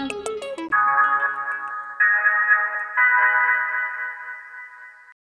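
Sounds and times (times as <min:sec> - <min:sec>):
jingle: 0:00.7 - 0:05.2.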